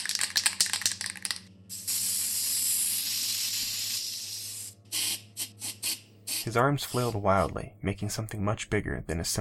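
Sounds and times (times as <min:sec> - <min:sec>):
spray paint can rattling: 0:00.0 - 0:06.4
spray paint can spraying: 0:00.0 - 0:07.2
speech: 0:06.5 - 0:09.3.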